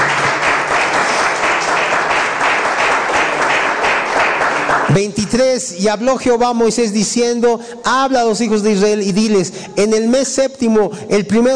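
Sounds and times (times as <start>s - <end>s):
audience applauding: 0.0s - 5.1s
speech: 5.0s - 11.5s.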